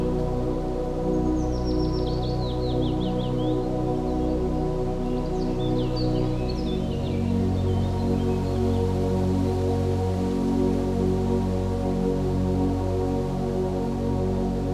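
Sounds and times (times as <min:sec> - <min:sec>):
relaxing music: 0:00.0 - 0:14.7
birds singing: 0:01.0 - 0:09.0.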